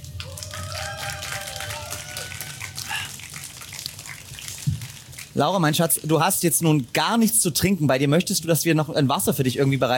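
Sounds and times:
audience applause: 0.0 - 5.2
speech: 5.4 - 9.9.

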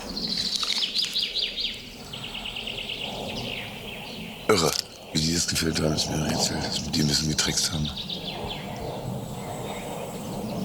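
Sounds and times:
goldcrest calling: 0.0 - 10.6
speech: 4.5 - 8.6.

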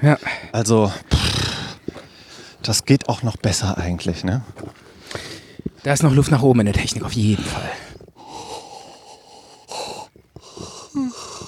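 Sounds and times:
speech: 0.0 - 1.1, 2.6 - 7.9
person yawning: 10.6 - 11.4.

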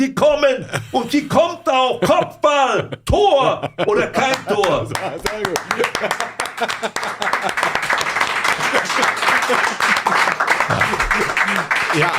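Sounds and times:
speech: 0.0 - 8.1, 9.0 - 9.9
laughter: 0.5 - 12.1
audience applause: 4.0 - 12.1.

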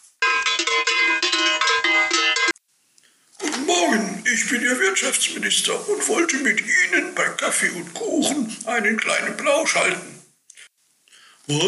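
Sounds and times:
doorbell ringing: 0.2 - 2.6
speech: 4.3 - 10.2, 11.5 - 11.6.

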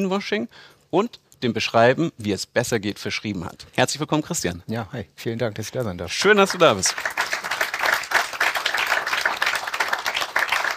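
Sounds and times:
speech: 0.0 - 7.2
studio audience applause in Mainz: 6.2 - 10.7.

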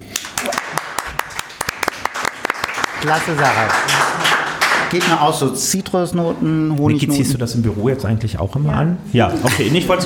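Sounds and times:
audience applause: 0.0 - 5.5
speech: 3.0 - 4.1, 4.9 - 10.0.

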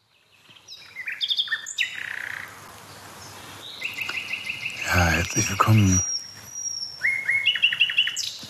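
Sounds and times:
nightingale singing: 0.0 - 2.6, 3.2 - 8.4
speech: 5.2 - 6.1.

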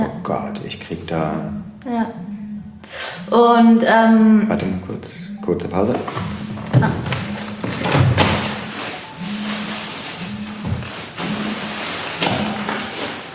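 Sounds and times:
Monday alarm clock buzzing with a low tone: 0.0 - 13.3
speech: 0.3 - 2.3, 2.9 - 7.2
thumps: 5.6 - 12.9.

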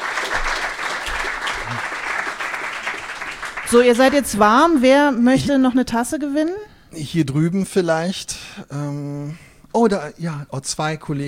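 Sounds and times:
audience applause: 0.0 - 4.4
speech: 3.7 - 11.2.

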